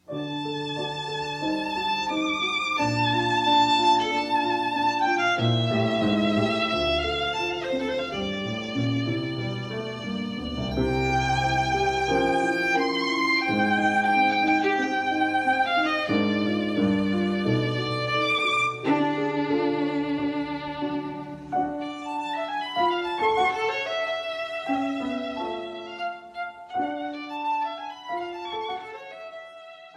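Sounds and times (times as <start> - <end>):
sonata in D major: 0.0 - 29.9.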